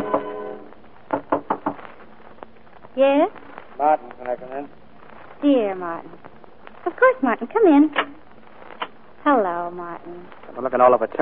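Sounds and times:
knocking on a door: 0:01.1 - 0:01.8
speech: 0:03.0 - 0:04.8, 0:05.4 - 0:08.2, 0:09.2 - 0:11.2.

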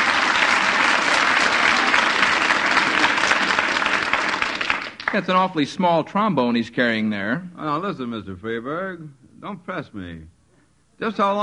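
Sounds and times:
audience applause: 0:00.0 - 0:05.3
speech: 0:05.1 - 0:10.3, 0:11.0 - 0:11.4.

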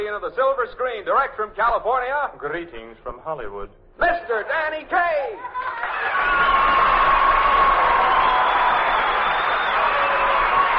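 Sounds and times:
speech: 0:00.1 - 0:07.0
large audience cheering and applauding: 0:05.6 - 0:10.7
shrill whistles and whoops: 0:05.6 - 0:10.7.

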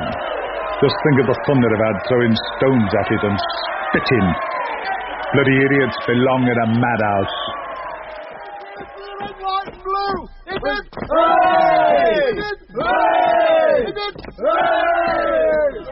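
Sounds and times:
crowd shouting hurrahs for the Navy and Kitchener: 0:00.0 - 0:15.8
speech: 0:00.8 - 0:07.4.

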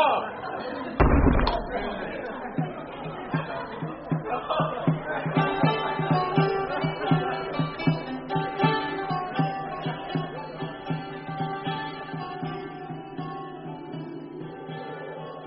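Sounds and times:
voices murmuring: 0:00.0 - 0:15.4
heavy hall door slamming shut: 0:01.0 - 0:02.6.

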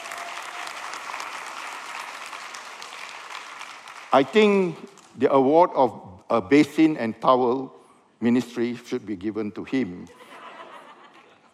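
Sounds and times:
audience applause: 0:00.0 - 0:04.4
speech: 0:04.1 - 0:10.3
laughter: 0:10.1 - 0:11.5.

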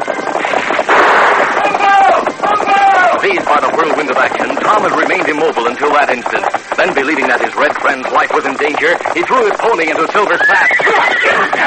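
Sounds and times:
gunshots from a Colt revolver and a single-shot rifle: 0:00.4 - 0:03.2
speech: 0:03.2 - 0:11.6.

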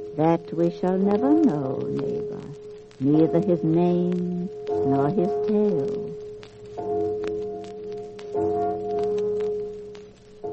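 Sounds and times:
speech: 0:00.2 - 0:06.0
deep church bell tolling: 0:04.7 - 0:07.6, 0:08.3 - 0:10.5.

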